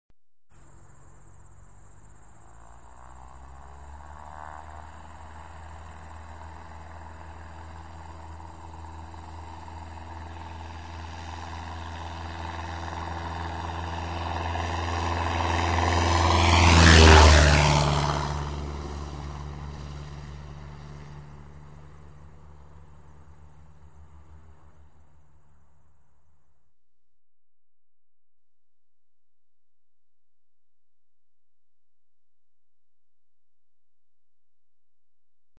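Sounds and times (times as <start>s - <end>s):
propeller airplane flyby: 0.5s - 26.7s.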